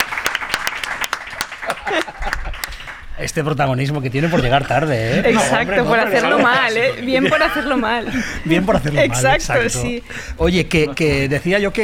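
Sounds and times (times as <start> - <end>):
applause: 0.0 - 3.2
laughter: 1.6 - 2.8, 4.3 - 9.4
speech: 3.2 - 11.8.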